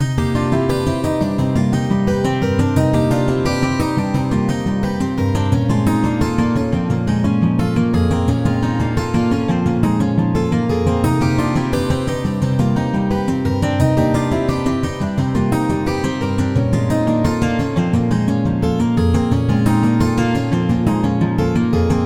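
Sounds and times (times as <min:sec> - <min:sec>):
polyphonic guitar: 0:00.0 - 0:22.0.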